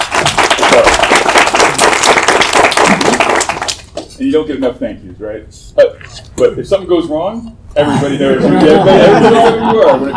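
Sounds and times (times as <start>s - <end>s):
audience applause: 0.0s - 3.9s
speech: 4.2s - 10.1s
laughter: 7.8s - 10.1s.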